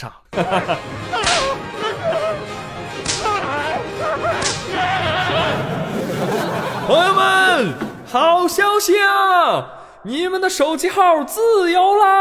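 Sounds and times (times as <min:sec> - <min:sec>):
speech: 0:00.0 - 0:01.5, 0:06.2 - 0:12.1
laughter: 0:00.3 - 0:08.1
whip cracking: 0:01.2 - 0:01.6, 0:03.0 - 0:03.5, 0:04.3 - 0:04.8.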